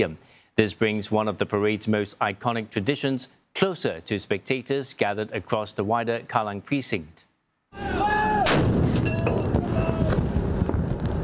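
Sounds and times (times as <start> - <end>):
speech: 0.0 - 8.3
25-pounder howitzer guns firing a 21-gun salute at the National Day Parade: 7.9 - 10.6.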